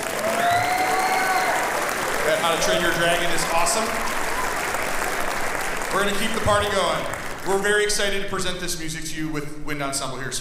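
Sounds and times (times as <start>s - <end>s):
audience applauding for school band: 0.0s - 8.3s
speech: 2.4s - 4.3s, 5.9s - 10.3s.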